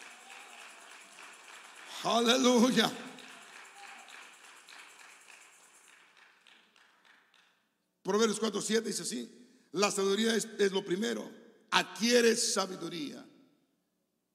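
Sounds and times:
audience clapping hands: 0:00.0 - 0:07.7
speech: 0:02.0 - 0:03.0, 0:08.1 - 0:13.3.

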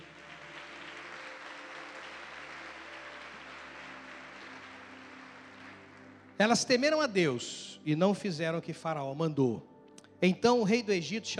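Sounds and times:
audience applause: 0:00.0 - 0:06.6
speech: 0:06.4 - 0:11.3.

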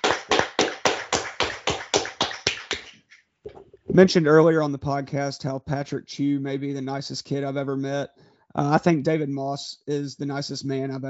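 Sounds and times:
hand claps: 0:00.0 - 0:03.2
speech: 0:04.0 - 0:11.0.

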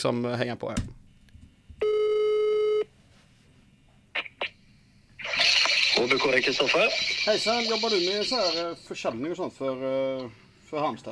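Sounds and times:
speech: 0:00.0 - 0:01.0, 0:06.0 - 0:11.0
telephone call tone: 0:01.8 - 0:02.9.

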